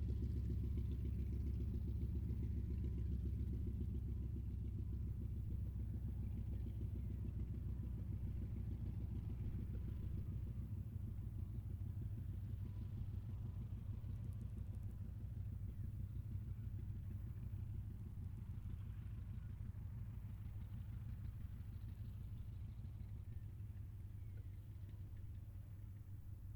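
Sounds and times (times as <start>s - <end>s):
distant CAC Wirraway CA-16 aircraft taxiing: 0.0s - 26.5s.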